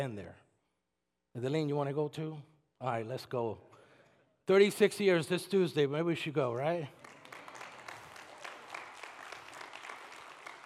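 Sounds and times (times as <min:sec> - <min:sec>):
speech: 0:00.0 - 0:00.5, 0:01.3 - 0:03.7, 0:04.5 - 0:07.0
audience clapping: 0:06.7 - 0:10.6.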